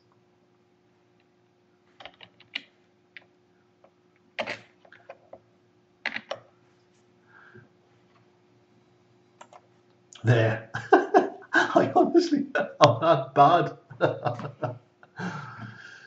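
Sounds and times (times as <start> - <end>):
typing on a computer keyboard: 6.1 - 6.4
speech: 10.2 - 10.6, 11.8 - 14.6
laughter: 10.3 - 16.0.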